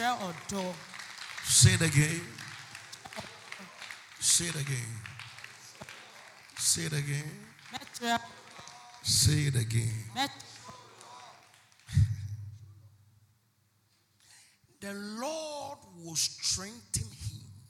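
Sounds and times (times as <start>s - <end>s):
people clapping: 0.0s - 12.4s
speech: 0.4s - 2.4s, 4.3s - 5.2s, 6.6s - 8.4s, 9.0s - 10.5s, 14.8s - 17.3s.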